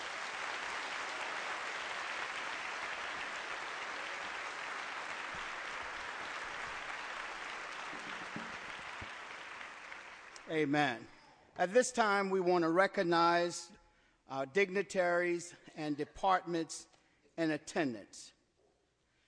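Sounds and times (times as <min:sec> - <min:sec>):
audience hand clapping: 0:00.0 - 0:10.5
speech: 0:10.5 - 0:18.4.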